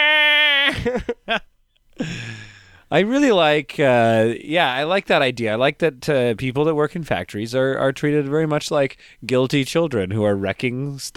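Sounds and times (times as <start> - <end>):
voice imitating a forklift crying like a toddler: 0.0 - 1.4
speech: 0.7 - 11.1.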